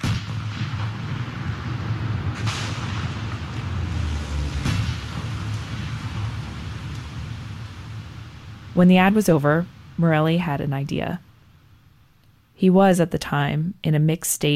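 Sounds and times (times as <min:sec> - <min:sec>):
gunfire: 0:00.0 - 0:06.9
car explosion: 0:00.0 - 0:08.8
speech: 0:08.8 - 0:11.2, 0:12.6 - 0:14.5.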